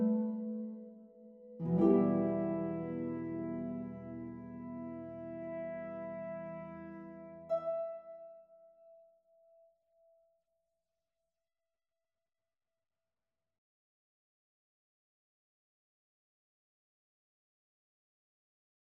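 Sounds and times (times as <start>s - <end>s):
harp: 0.0s - 9.6s
horn: 1.6s - 8.0s.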